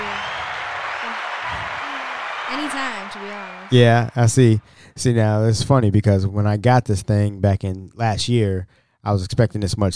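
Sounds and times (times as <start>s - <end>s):
hands clapping: 0.0s - 4.6s
speech: 2.5s - 9.9s.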